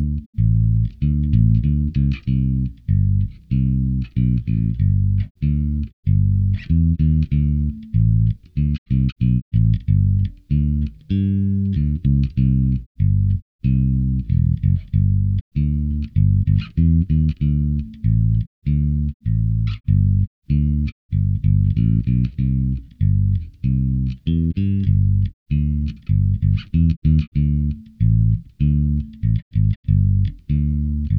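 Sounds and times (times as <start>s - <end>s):
bass guitar: 0.0s - 31.1s.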